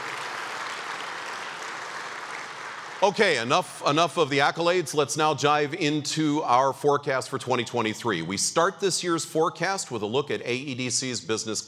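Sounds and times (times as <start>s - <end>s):
audience applause: 0.0s - 3.8s
speech: 3.0s - 11.6s.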